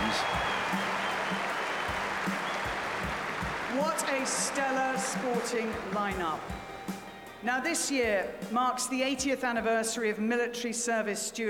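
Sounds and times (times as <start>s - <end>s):
crowd applauding: 0.0s - 7.1s
speech: 4.0s - 6.7s, 7.4s - 11.4s.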